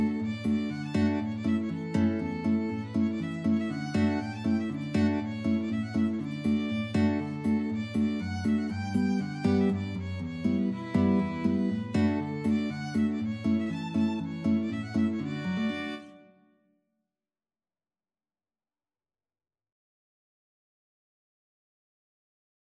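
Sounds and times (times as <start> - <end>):
violin playing a storpolska: 0.0 - 16.4
guitar: 0.0 - 16.6.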